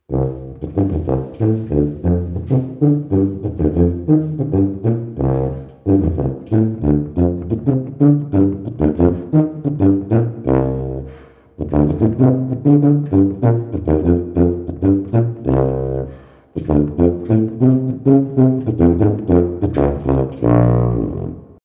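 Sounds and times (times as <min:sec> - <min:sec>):
tuba: 0:00.0 - 0:21.6.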